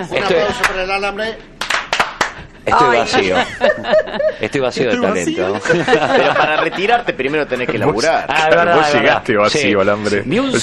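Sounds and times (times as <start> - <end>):
speech: 0.0 - 1.5, 2.7 - 10.6
applause: 1.6 - 2.4
laughter: 2.5 - 9.1.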